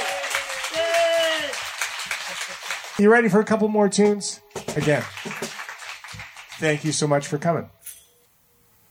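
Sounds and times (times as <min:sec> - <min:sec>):
audience applause at an outdoor porch concert: 0:00.0 - 0:03.0, 0:04.0 - 0:07.3
speech: 0:03.0 - 0:05.4, 0:06.6 - 0:07.8.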